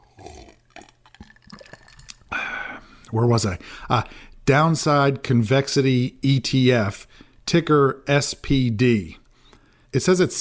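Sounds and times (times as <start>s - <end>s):
person drinking water: 0.0s - 3.1s
speech: 3.1s - 9.2s, 9.9s - 10.3s.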